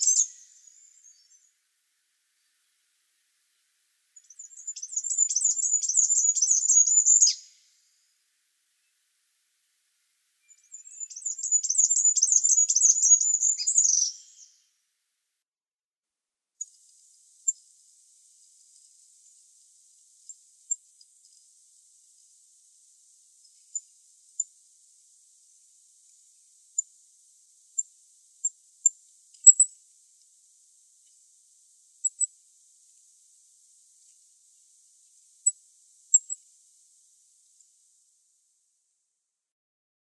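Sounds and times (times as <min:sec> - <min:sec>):
Regulus regulus bird: 0:00.0 - 0:01.5, 0:04.1 - 0:07.8, 0:10.4 - 0:14.6, 0:16.6 - 0:24.6, 0:27.7 - 0:30.3, 0:32.0 - 0:32.4, 0:33.7 - 0:36.6.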